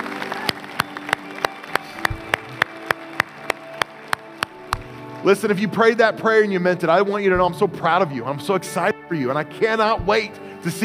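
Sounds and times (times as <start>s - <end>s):
audience applause: 0.0s - 5.6s
speech: 5.2s - 10.8s.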